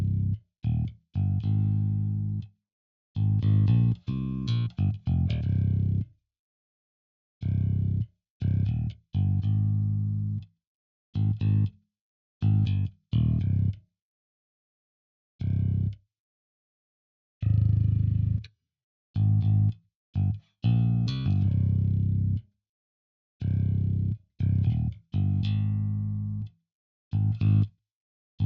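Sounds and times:
bass: 0.0s - 2.6s, 3.2s - 6.1s, 7.4s - 10.5s, 11.2s - 11.8s, 12.4s - 13.8s, 15.4s - 16.0s, 17.4s - 22.5s, 23.4s - 27.8s.

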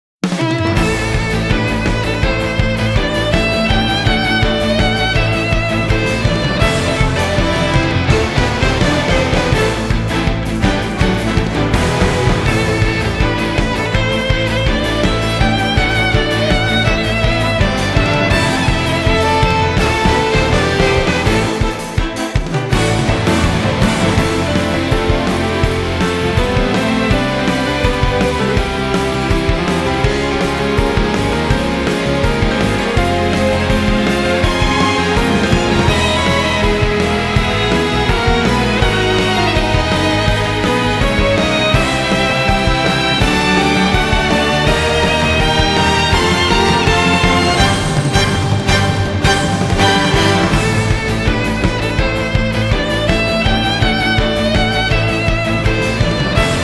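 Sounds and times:
battle music: 0.2s - 56.6s.

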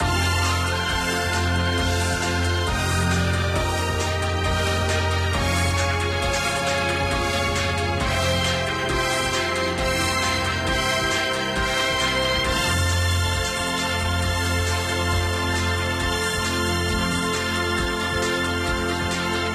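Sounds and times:
gacha background music: 0.0s - 19.5s.

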